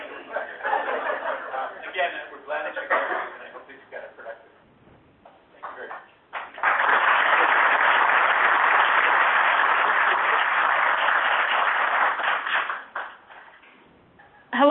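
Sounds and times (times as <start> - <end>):
laughter: 0.0 - 3.7
audience clapping: 5.6 - 13.6.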